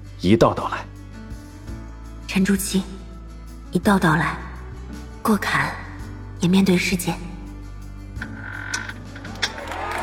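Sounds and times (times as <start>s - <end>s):
speech: 0.2s - 0.9s, 2.3s - 3.0s, 3.7s - 4.4s, 5.2s - 5.8s, 6.4s - 7.3s
door creaking open: 8.2s - 9.6s.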